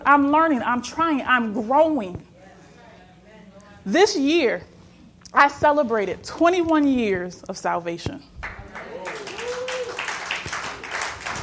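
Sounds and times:
speech: 0:00.1 - 0:02.3, 0:03.8 - 0:04.7, 0:05.3 - 0:08.3
audience clapping: 0:08.4 - 0:11.4.

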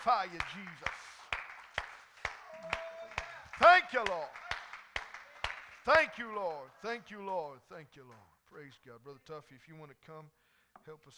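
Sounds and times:
speech: 0:00.0 - 0:01.2, 0:03.6 - 0:04.4, 0:05.8 - 0:11.1
audience clapping hands in praise: 0:00.0 - 0:08.3.

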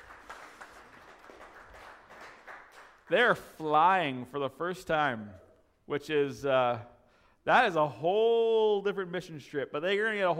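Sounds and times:
audience applause: 0:00.0 - 0:03.1
speech: 0:03.1 - 0:10.3.

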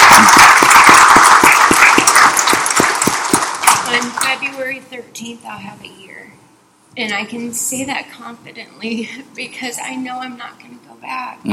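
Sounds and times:
audience clapping: 0:00.0 - 0:04.3
speech: 0:05.2 - 0:11.5.

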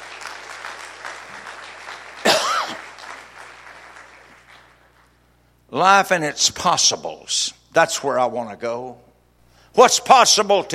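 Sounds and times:
audience clapping: 0:00.0 - 0:05.2
speech: 0:05.7 - 0:09.1, 0:09.7 - 0:10.7.

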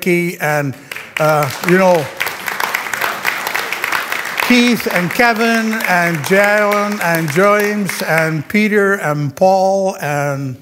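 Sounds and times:
speech: 0:00.0 - 0:02.2, 0:04.5 - 0:10.5
audience applause: 0:00.9 - 0:08.5.

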